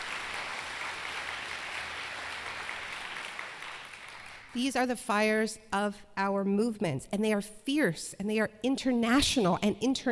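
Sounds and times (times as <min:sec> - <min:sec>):
audience applause: 0:00.0 - 0:04.5
speech: 0:04.5 - 0:10.1.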